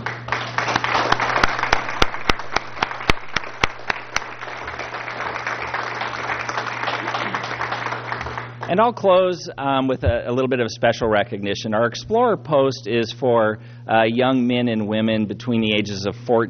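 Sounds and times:
applause: 0.0 - 8.8
speech: 8.7 - 16.4.

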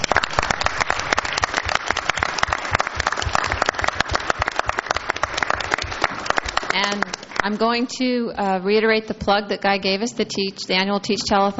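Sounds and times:
round of applause: 0.0 - 7.6
speech: 7.4 - 11.5.

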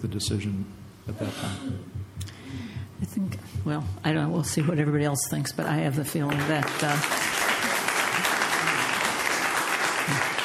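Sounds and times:
speech: 0.0 - 7.4
audience applauding at a public meeting: 6.3 - 10.4.

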